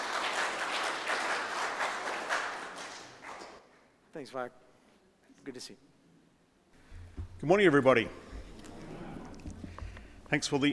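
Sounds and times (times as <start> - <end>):
audience applause welcoming a speaker at a leaders' gathering: 0.0 - 3.6
speech: 4.2 - 4.7, 5.4 - 5.9, 7.4 - 8.2, 10.3 - 10.7.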